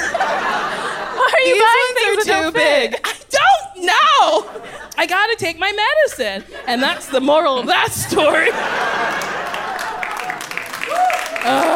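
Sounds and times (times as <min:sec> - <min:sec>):
laughter: 0:00.0 - 0:03.0, 0:05.8 - 0:11.7
speech: 0:02.5 - 0:03.1, 0:05.0 - 0:09.3, 0:11.4 - 0:11.7
audience clapping: 0:08.7 - 0:11.7.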